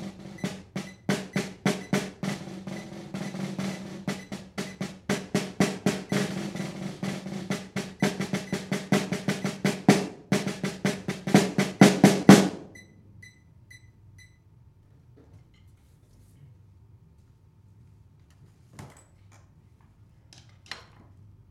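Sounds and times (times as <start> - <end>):
medium slow snare drum cycle: 0.0 - 12.9.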